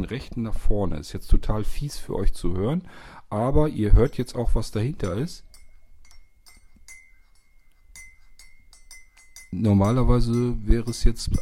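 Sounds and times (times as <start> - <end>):
speech: 0.0 - 5.5, 9.5 - 11.4
spoon stirring in a ceramic coffee cup: 4.0 - 11.4.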